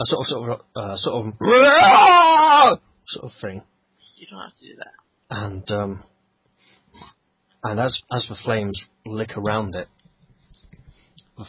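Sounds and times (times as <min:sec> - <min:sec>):
speech: 0:00.0 - 0:06.1, 0:07.0 - 0:10.0
voice imitating a wordless shriek: 0:01.4 - 0:02.8.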